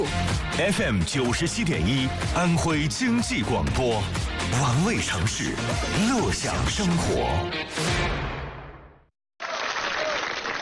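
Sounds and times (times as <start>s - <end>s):
speech: 0.0s - 8.2s
audience applause: 9.4s - 10.5s.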